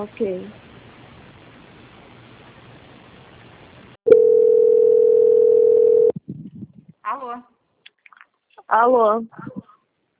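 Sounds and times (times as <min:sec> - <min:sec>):
speech: 0:00.0 - 0:00.6, 0:08.7 - 0:09.6
steady single-pitch telephone line tone during call transfer on hold: 0:04.1 - 0:06.2.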